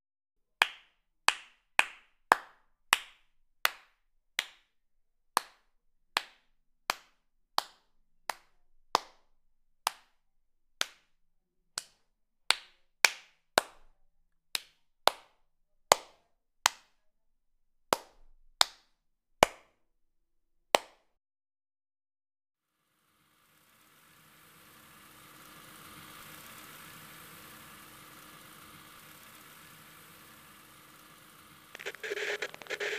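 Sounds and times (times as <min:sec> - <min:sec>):
hand clapping: 0:00.6 - 0:04.7, 0:05.4 - 0:09.3, 0:09.9 - 0:10.2, 0:10.8 - 0:11.1, 0:11.8 - 0:13.9, 0:14.6 - 0:15.3, 0:15.9 - 0:17.0, 0:17.9 - 0:19.7, 0:20.8 - 0:21.0.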